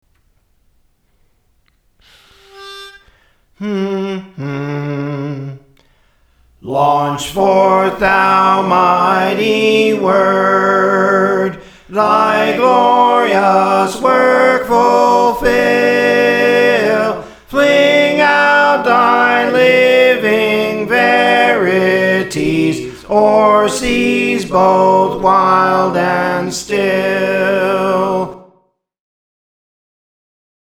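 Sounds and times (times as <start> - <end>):
soprano singing: 3.6 - 5.7, 6.6 - 28.4.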